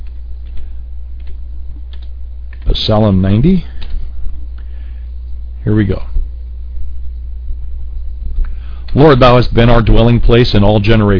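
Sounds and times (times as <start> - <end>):
computer keyboard typing clicks: 0.0 - 2.8
low hum: 0.0 - 11.1
speech: 2.8 - 3.7, 5.7 - 6.2, 9.0 - 11.1.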